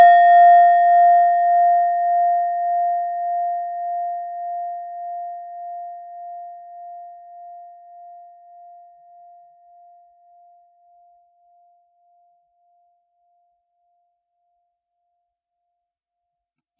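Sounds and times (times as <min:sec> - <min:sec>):
klangschale singing bowl from Nepal: 0:00.0 - 0:14.7.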